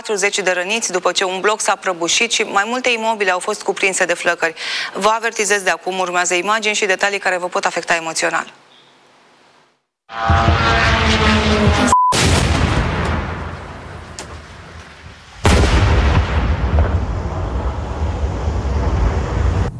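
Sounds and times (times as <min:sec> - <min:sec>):
speech: 0:00.1 - 0:08.6, 0:10.1 - 0:11.3
explosions over Kiev: 0:10.2 - 0:19.7.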